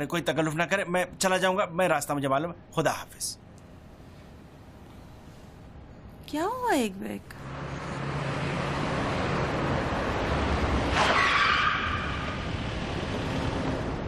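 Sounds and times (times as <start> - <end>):
speech: 0.0 - 3.4, 6.3 - 7.7
car driving close by: 7.3 - 14.0
car tire squeal while skidding: 10.8 - 13.6.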